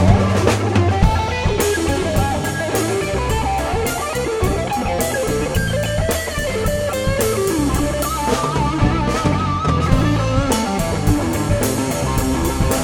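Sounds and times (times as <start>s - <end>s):
band warmup jam: 0.0s - 12.8s.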